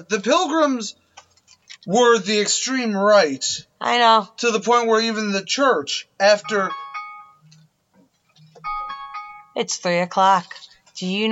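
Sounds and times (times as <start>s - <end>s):
speech: 0.0s - 1.0s, 1.8s - 6.8s, 9.6s - 11.2s
alarm tone: 6.2s - 7.7s, 8.4s - 9.6s.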